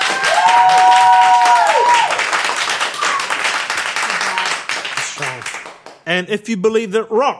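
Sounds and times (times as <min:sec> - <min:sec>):
audience applause: 0:00.0 - 0:06.0
high whistle: 0:03.0 - 0:03.4
speech: 0:06.1 - 0:07.3.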